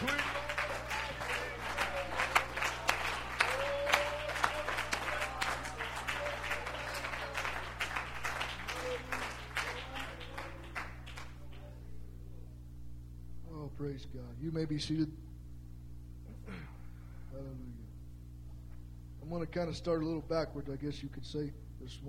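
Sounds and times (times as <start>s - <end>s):
scattered voices: 0.0s - 10.9s
audience hand clapping: 0.0s - 11.9s
low steady hum: 0.0s - 22.0s
speech: 14.4s - 15.3s, 19.6s - 22.0s.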